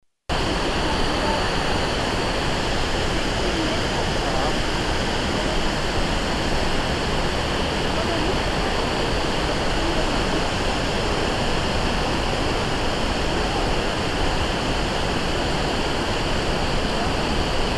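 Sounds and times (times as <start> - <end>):
Rhine Falls waterfall: 0.3 - 17.7.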